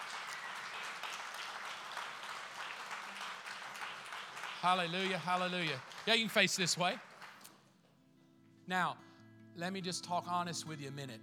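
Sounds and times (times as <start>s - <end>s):
church congregation applauding: 0.0s - 7.5s
speech: 4.6s - 7.1s, 8.7s - 9.0s, 9.6s - 11.2s.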